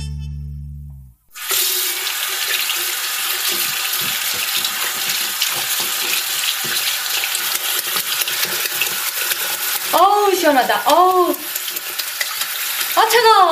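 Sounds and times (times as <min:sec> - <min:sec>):
running tap water: 0:01.3 - 0:13.4
speech: 0:13.1 - 0:13.4.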